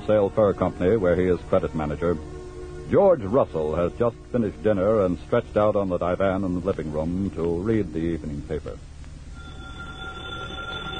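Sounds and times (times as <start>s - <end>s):
speech: 0.0s - 8.9s
old telephone bell ringing: 9.4s - 10.9s.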